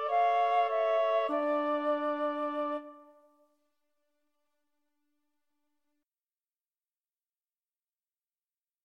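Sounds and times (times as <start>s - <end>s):
oboe: 0.0s - 3.3s
clarinet: 0.0s - 3.4s
flute: 0.0s - 3.4s.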